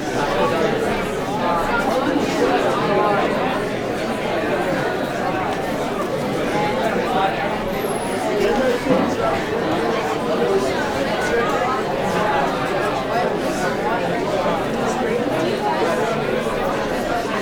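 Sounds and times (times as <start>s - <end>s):
busy student crowd walla at a school: 0.0s - 17.4s.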